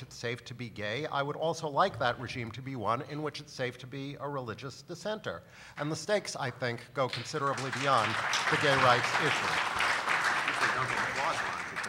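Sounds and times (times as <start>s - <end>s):
speech: 0.0s - 9.8s
crowd clapping: 7.1s - 11.8s.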